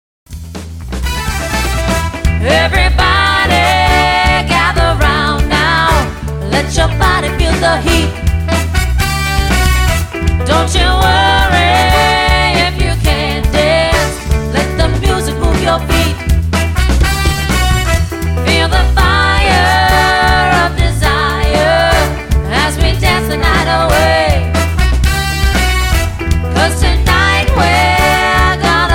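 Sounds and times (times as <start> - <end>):
conga drum: 0.3 - 28.9.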